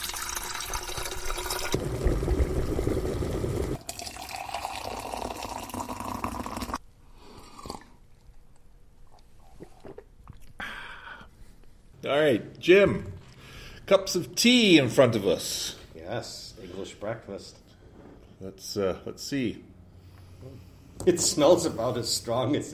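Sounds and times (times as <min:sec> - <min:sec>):
tap water gushing into a kettle: 0:00.0 - 0:06.8
speech: 0:12.1 - 0:13.1, 0:13.9 - 0:17.6, 0:18.4 - 0:19.7, 0:20.4 - 0:22.7.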